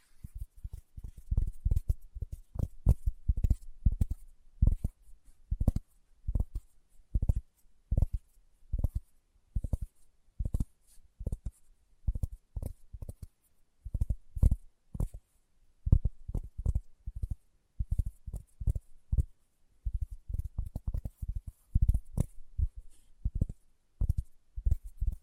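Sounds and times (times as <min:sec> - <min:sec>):
faint hiss: 0:00.0 - 0:00.4
fingertips tapping: 0:00.1 - 0:15.2, 0:15.9 - 0:25.2.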